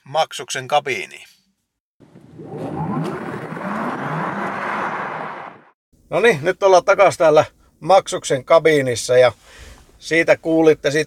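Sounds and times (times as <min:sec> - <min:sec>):
speech: 0:00.1 - 0:01.4, 0:06.1 - 0:11.0
mid-size electric hatchback car driving: 0:02.0 - 0:05.8.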